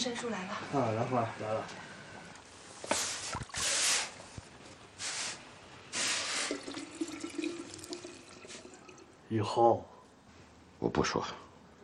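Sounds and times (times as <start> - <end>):
speech: 0.0 - 1.9, 9.3 - 9.9, 10.8 - 11.8
boiling water poured from a kettle into a thermos flask: 2.2 - 4.2, 6.0 - 9.2.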